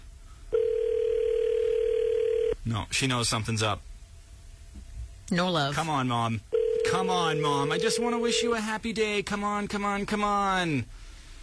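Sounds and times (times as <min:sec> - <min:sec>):
telephone line tone while calling: 0:00.5 - 0:02.6, 0:06.5 - 0:08.6
speech: 0:02.7 - 0:03.9, 0:05.3 - 0:11.1.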